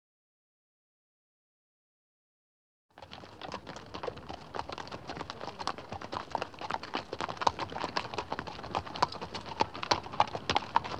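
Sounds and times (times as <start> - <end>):
horse hoofbeats: 3.0 - 10.9.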